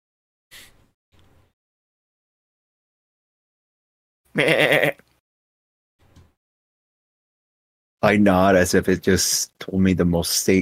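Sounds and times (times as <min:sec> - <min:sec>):
person imitating a sheep bleat: 0:04.3 - 0:05.0
speech: 0:04.4 - 0:05.0, 0:08.0 - 0:10.6.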